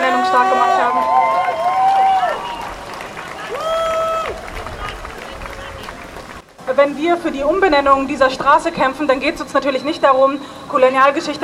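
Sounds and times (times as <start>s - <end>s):
crowd applause at a Black Lives Matter street demonstration: 0.3s - 6.6s
speech: 6.8s - 11.4s.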